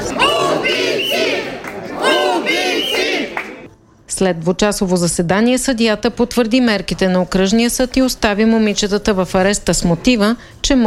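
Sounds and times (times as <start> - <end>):
protesters chanting outside a courthouse: 0.0 - 3.7
speech: 4.2 - 10.8.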